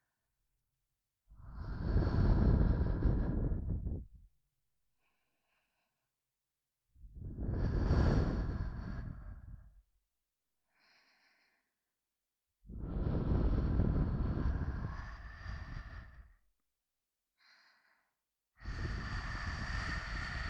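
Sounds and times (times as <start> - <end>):
person breathing in the left ear: 1.4 - 4.2, 5.0 - 6.2, 7.3 - 9.8, 10.7 - 11.8, 12.7 - 16.4, 17.4 - 20.4.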